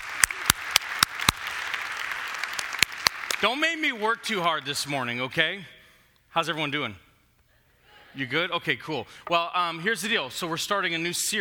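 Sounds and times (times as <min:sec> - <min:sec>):
loud, evenly spaced claps: 0:00.0 - 0:04.4
speech: 0:03.4 - 0:07.0, 0:08.2 - 0:11.3.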